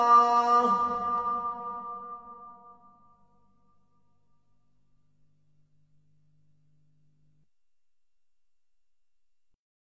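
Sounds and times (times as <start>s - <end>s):
Azan call to prayer: 0.0s - 2.3s.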